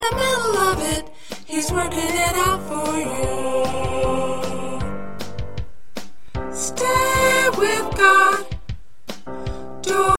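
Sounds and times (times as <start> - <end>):
soprano singing: 0.0 - 5.0, 6.5 - 8.6, 9.8 - 10.1.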